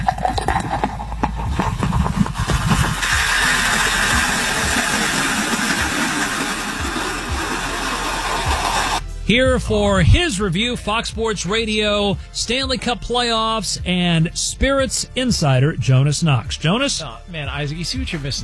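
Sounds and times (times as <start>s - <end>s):
beer pouring into a hockey skate mug: 0.0s - 9.0s
speech: 9.3s - 18.4s.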